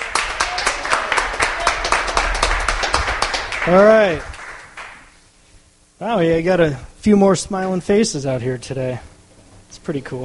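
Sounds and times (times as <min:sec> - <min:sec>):
crowd applause: 0:00.0 - 0:05.1
low rumble: 0:01.0 - 0:04.5
speech: 0:03.7 - 0:04.3, 0:06.0 - 0:09.1, 0:09.7 - 0:10.2.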